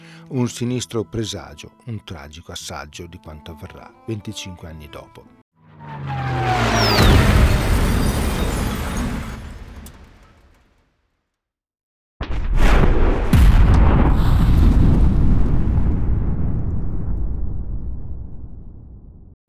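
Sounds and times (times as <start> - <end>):
speech: 0.3 - 6.2
aerial bombs falling on Porta Romana: 5.8 - 10.6, 12.2 - 19.3.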